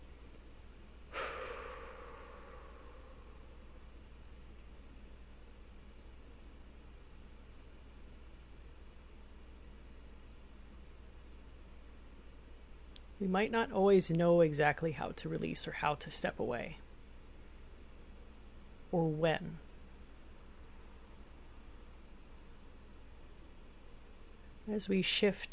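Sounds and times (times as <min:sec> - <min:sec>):
steady low hum: 0:00.0 - 0:24.7
long noisy exhale during a breathing exercise: 0:01.1 - 0:03.9
speech: 0:13.2 - 0:16.8, 0:18.9 - 0:19.7, 0:24.7 - 0:25.5.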